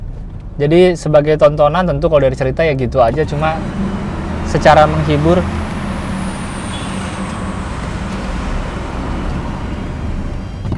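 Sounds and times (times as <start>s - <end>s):
road traffic noise at toll booth: 0.0s - 10.7s
speech: 0.6s - 3.9s, 4.5s - 5.6s.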